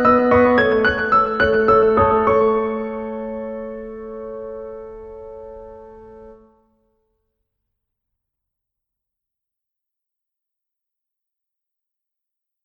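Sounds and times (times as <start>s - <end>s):
piano: 0.0s - 6.8s.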